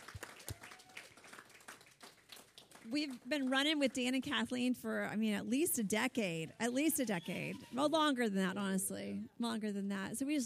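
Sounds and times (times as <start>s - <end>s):
audience hand clapping to welcome guests: 0.0s - 4.3s
speech: 2.9s - 10.4s.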